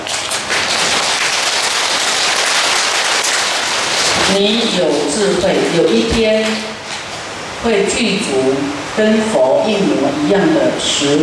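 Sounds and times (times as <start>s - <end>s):
audience clapping hands: 0.0s - 7.1s
speech: 4.3s - 6.7s, 7.6s - 11.2s.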